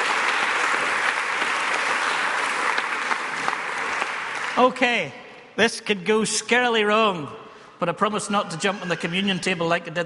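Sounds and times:
audience applauding volunteer youth leaders: 0.0s - 4.9s
speech: 4.6s - 10.0s.

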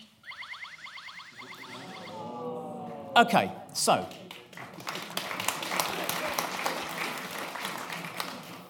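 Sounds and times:
audience applauding a robot demonstration: 1.6s - 8.6s
speech: 3.2s - 4.2s.

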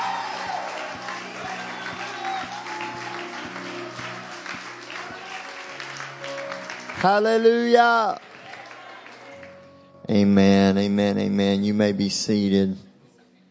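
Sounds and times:
audience clapping hands: 0.0s - 9.8s
speech: 7.0s - 8.3s, 10.1s - 12.9s.

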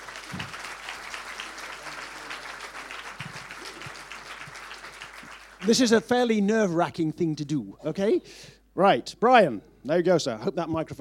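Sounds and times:
audience applause: 0.0s - 6.0s
speech: 5.6s - 11.0s.

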